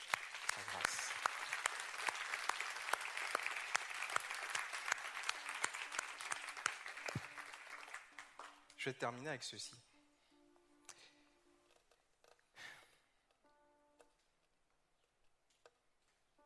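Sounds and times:
church congregation applauding: 0:00.0 - 0:09.2
speech: 0:08.8 - 0:09.9.

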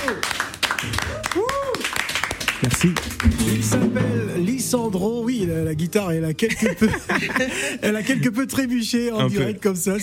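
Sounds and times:
applause in a radio studio: 0:00.0 - 0:03.6
speech: 0:02.6 - 0:10.0
laughter: 0:06.4 - 0:08.4.

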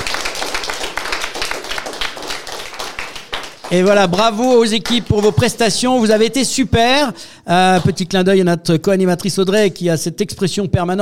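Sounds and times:
group clapping: 0:00.0 - 0:06.2
speech: 0:03.7 - 0:11.0.

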